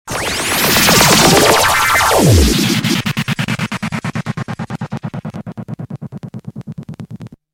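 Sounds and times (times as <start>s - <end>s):
combo swirl: 0.1s - 6.2s.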